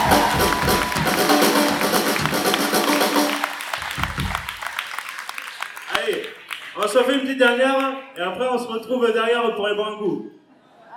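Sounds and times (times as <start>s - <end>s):
audience applauding: 0.0s - 8.0s
speech: 6.9s - 10.4s.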